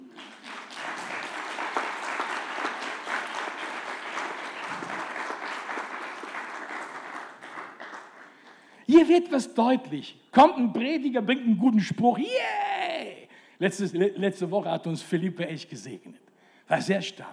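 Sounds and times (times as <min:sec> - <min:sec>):
audience applause: 0:00.0 - 0:08.7
speech: 0:09.0 - 0:12.6, 0:13.6 - 0:17.3.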